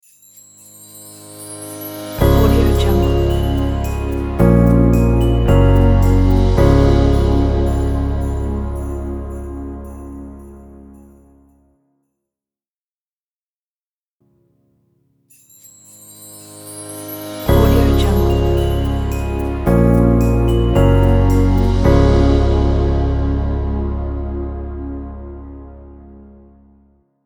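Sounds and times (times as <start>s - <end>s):
Christmas logo jingle: 0.0s - 11.6s, 15.3s - 24.7s.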